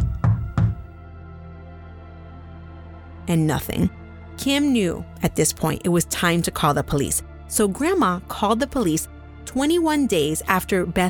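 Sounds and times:
knocks on a house door: 0.0 - 0.9
speech: 3.2 - 11.0.

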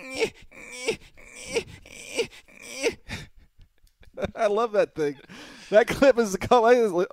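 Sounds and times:
man imitating Eli Manning whining and crying: 0.0 - 3.3
speech: 0.2 - 1.0, 4.4 - 7.1.

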